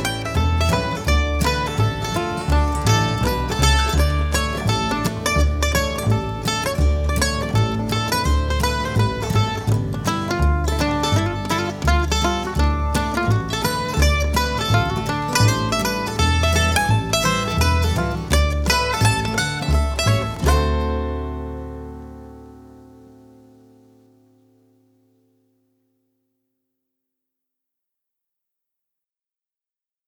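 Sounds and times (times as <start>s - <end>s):
bluegrass stomp music: 0.0s - 23.4s.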